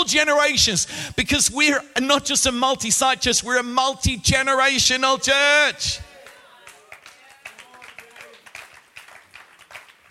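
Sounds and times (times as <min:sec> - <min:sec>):
speech: 0:00.0 - 0:06.1
crowd clapping: 0:06.0 - 0:10.0.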